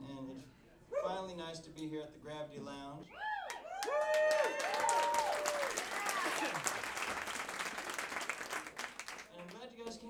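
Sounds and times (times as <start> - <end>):
speech: 1.0 - 3.3, 6.4 - 7.2
audience clapping: 3.4 - 10.0.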